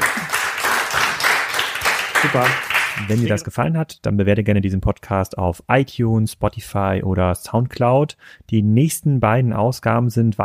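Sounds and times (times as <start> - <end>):
applause: 0.0 - 3.4
speech: 2.2 - 10.4.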